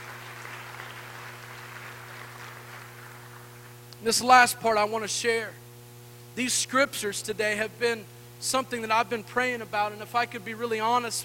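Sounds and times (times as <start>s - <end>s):
audience clapping hands: 0.0s - 3.8s
speech: 4.0s - 5.6s, 6.4s - 11.2s.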